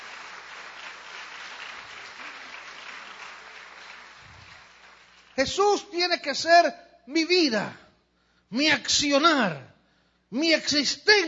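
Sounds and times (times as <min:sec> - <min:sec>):
large crowd applause: 0:00.0 - 0:05.4
speech: 0:05.4 - 0:07.8, 0:08.5 - 0:09.7, 0:10.3 - 0:11.2.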